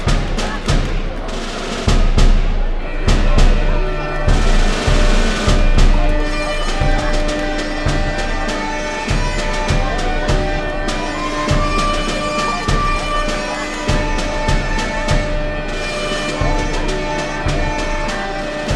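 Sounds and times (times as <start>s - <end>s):
pipe band playing: 0.0s - 18.7s.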